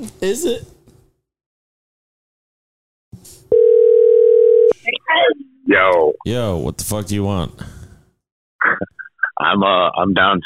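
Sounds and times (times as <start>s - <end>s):
speech: 0.0s - 0.7s, 5.1s - 7.7s, 8.8s - 10.4s
telephone call ringback tone: 3.5s - 4.8s.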